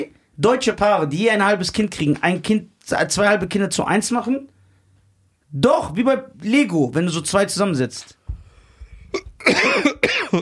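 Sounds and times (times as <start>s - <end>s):
speech: 0.0s - 4.5s, 5.5s - 8.2s, 9.1s - 10.4s
harsh raspy coughs: 9.1s - 10.4s.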